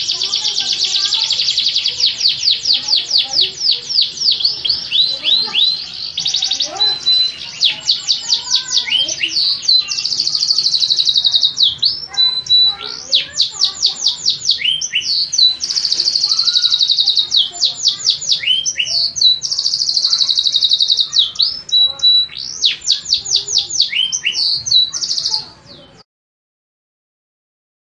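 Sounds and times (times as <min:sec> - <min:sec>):
Atlantic canary song: 0:00.0 - 0:26.1.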